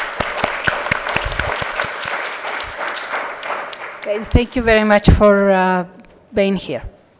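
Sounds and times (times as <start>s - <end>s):
audience applause: 0.0s - 4.5s
speech: 4.1s - 6.9s.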